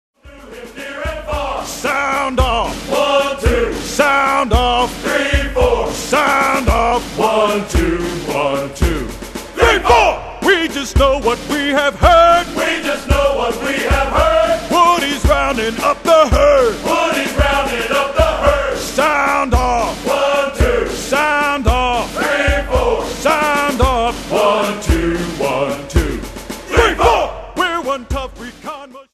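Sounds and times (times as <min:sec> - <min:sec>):
group singing along a cadence: 0:00.2 - 0:28.0.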